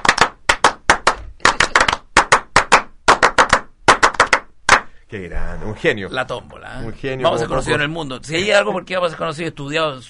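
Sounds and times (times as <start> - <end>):
applause: 0.0 - 4.9
speech: 5.1 - 10.0.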